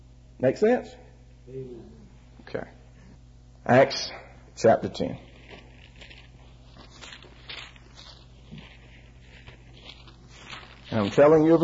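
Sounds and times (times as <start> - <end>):
speech: 0.4 - 2.8, 3.6 - 5.3, 10.9 - 11.6
thin Bible pages turning: 4.9 - 11.6.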